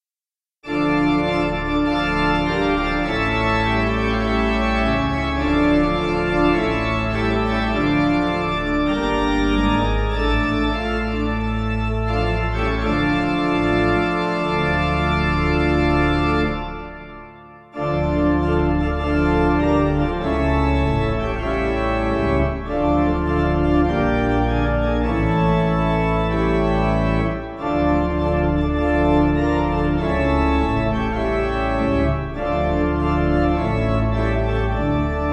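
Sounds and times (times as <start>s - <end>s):
pipe organ: 0.6s - 35.3s.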